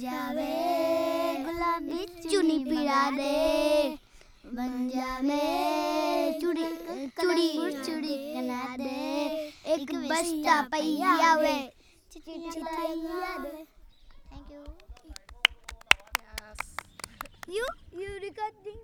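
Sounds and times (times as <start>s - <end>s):
three children from Jodhpur singing folk songs: 0.0s - 14.8s.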